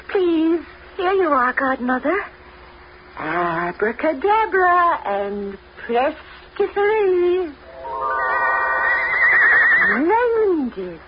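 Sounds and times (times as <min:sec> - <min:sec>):
speech: 0:01.1 - 0:02.4, 0:03.2 - 0:07.6, 0:09.8 - 0:11.0
white coach horse whinnying: 0:07.8 - 0:10.0.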